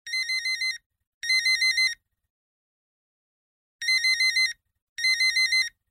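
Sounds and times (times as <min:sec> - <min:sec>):
vivo vintage ringtone: 0:00.1 - 0:02.0, 0:03.8 - 0:05.8.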